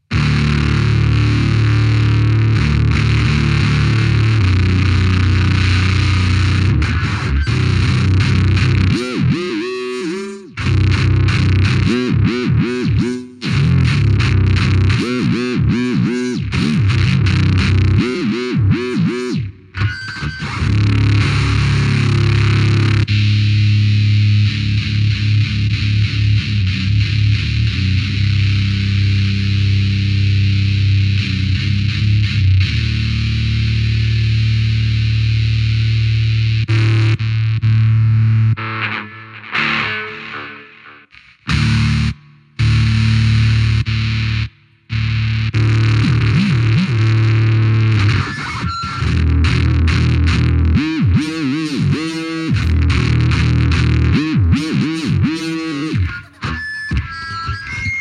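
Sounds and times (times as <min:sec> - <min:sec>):
guitar: 0:00.0 - 0:57.9.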